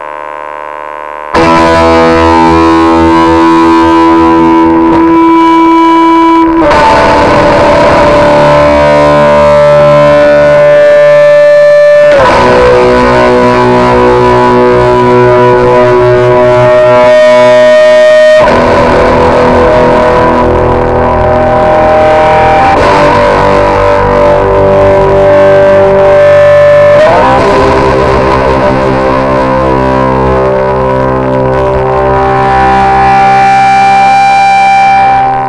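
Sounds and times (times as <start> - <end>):
metal music: 1.4 - 35.4.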